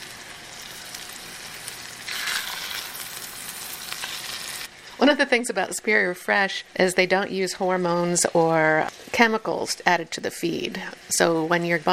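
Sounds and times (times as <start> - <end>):
salted Atlantic salmon fillets sizzling in hot butter and oil: 0.0 - 4.7
speech: 5.0 - 11.9.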